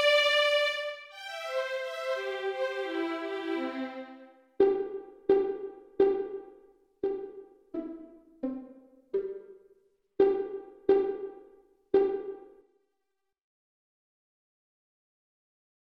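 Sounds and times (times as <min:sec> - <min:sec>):
violin pony trot rhythm: 0:00.0 - 0:09.6, 0:10.2 - 0:12.5.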